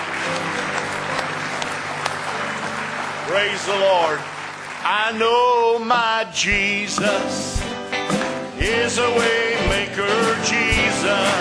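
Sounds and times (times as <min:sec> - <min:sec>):
audience clapping hands in praise: 0:00.0 - 0:09.0
speech: 0:03.3 - 0:07.7, 0:08.6 - 0:11.3.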